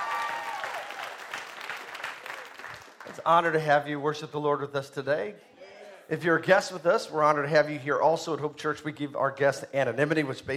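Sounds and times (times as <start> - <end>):
church congregation clapping hands in praise: 0.0 - 3.6
speech: 3.2 - 5.5, 6.1 - 10.5.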